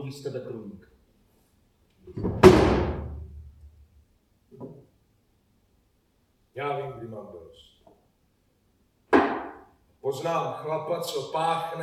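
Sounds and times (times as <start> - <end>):
speech: 0.1 - 0.9, 2.0 - 2.9, 6.6 - 7.7, 10.0 - 11.8
wooden chair toppling and crashing onto the floor: 2.1 - 3.7, 9.2 - 9.7.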